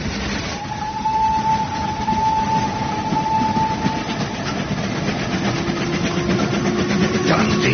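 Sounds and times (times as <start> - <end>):
steam train rushing into a tunnel: 0.0 - 7.7
high whistle-like tone over a steam train: 0.5 - 4.6.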